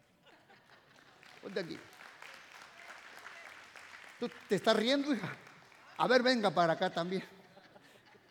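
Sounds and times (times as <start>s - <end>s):
laughter: 0.1s - 1.8s, 5.0s - 8.2s
audience applause: 0.9s - 6.7s
speech: 1.4s - 2.0s, 4.2s - 5.4s, 6.0s - 7.4s.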